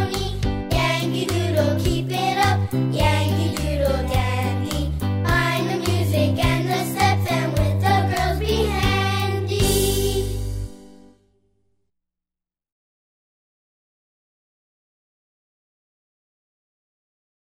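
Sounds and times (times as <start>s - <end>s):
children's song in English: 0.0s - 10.9s.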